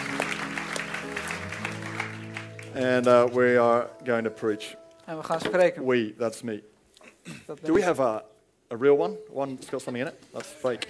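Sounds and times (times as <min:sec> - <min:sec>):
audience applauding the band: 0:00.0 - 0:03.4
speech: 0:02.8 - 0:10.8.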